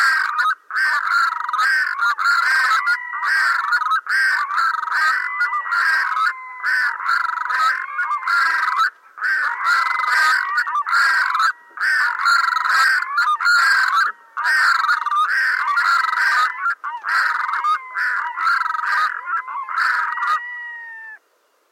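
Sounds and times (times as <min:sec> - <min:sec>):
red-throated loon giving drawn-out wailing notes: 0:00.0 - 0:21.2.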